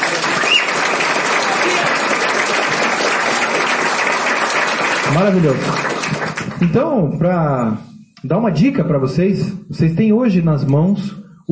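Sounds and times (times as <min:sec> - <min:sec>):
audience applause: 0:00.0 - 0:06.8
speech: 0:05.2 - 0:06.0, 0:06.6 - 0:11.4.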